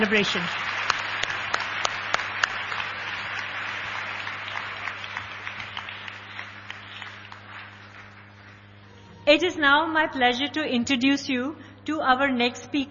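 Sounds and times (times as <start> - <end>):
speech: 0.0 - 0.6, 9.3 - 12.9
crowd applauding: 0.0 - 9.0
low steady hum: 0.0 - 12.9.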